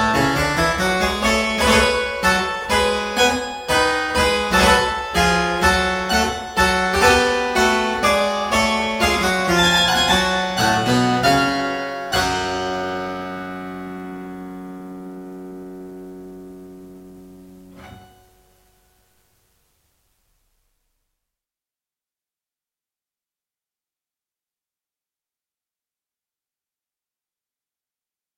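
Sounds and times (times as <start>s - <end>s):
minuet: 0.0s - 18.4s.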